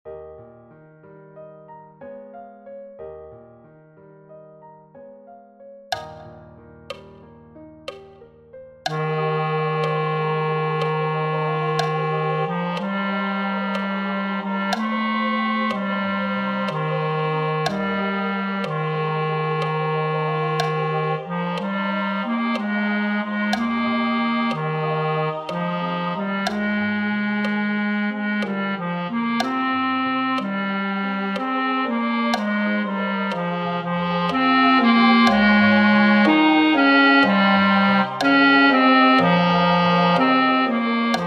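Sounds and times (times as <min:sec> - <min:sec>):
wedding chorus singing: 0:09.0 - 0:41.2.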